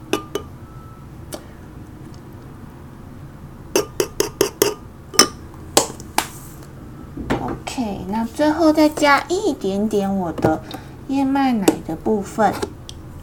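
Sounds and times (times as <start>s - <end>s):
spoon clinking against a bowl stirring an oat mixture: 0.1s - 0.6s, 3.8s - 5.4s
speech: 7.8s - 12.7s.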